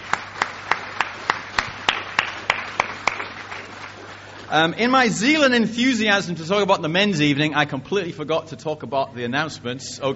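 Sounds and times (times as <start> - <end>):
applause: 0.0 - 4.6
speech: 4.5 - 10.1.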